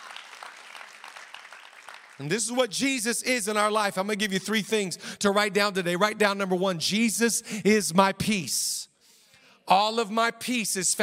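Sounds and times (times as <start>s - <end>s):
audience clapping: 0.0s - 2.6s
speech: 2.2s - 8.8s, 9.7s - 11.0s.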